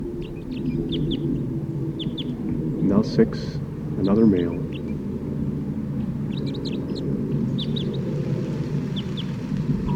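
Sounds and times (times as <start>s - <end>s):
wild birds calling: 0.0s - 9.9s
speech: 3.0s - 4.8s.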